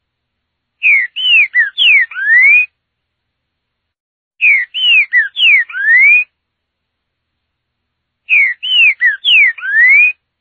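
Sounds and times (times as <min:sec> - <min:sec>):
green-winged saltator singing slurred falling whistles: 0:00.8 - 0:02.7, 0:04.4 - 0:06.3, 0:08.3 - 0:10.2.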